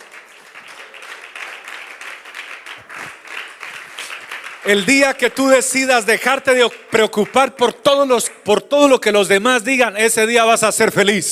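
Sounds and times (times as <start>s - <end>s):
audience applause: 0.0s - 8.6s
speech: 4.6s - 11.3s.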